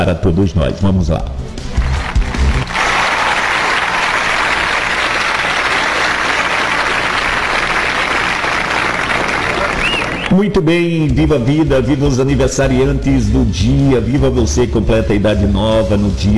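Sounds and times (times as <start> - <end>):
speech: 0.0 - 1.5, 10.3 - 16.3
applause: 1.7 - 10.3.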